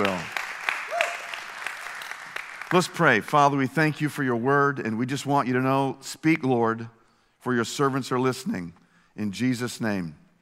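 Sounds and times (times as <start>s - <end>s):
audience applause: 0.0s - 3.1s
speech: 2.7s - 10.2s.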